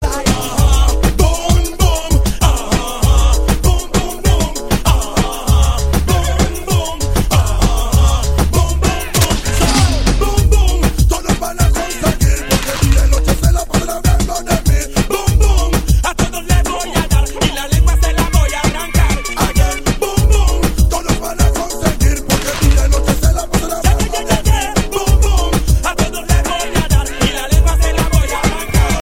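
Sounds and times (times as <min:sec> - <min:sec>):
Spanish ragga ringtone: 0:00.0 - 0:29.0.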